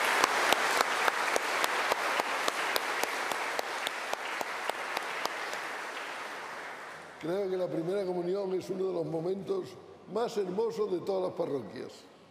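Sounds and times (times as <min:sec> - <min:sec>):
audience applause: 0:00.0 - 0:07.2
speech: 0:07.2 - 0:12.1.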